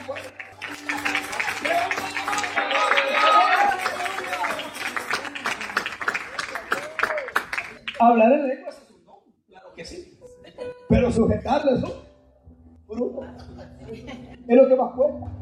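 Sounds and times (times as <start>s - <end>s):
audience clapping hands: 0.0s - 8.0s
voices calling out and cheering: 0.8s - 5.8s
speech: 8.0s - 8.6s, 11.2s - 12.0s
laughter: 13.0s - 14.5s.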